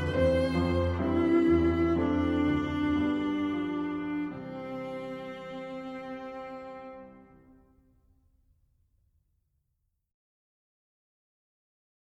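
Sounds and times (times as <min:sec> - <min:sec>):
viola playing a chorale: 0:00.0 - 0:07.7.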